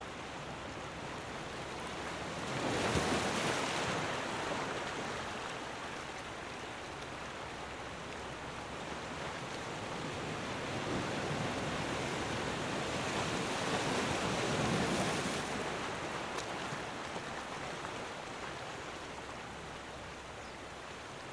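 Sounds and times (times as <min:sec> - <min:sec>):
ocean waves long rolling: 0:00.1 - 0:21.3.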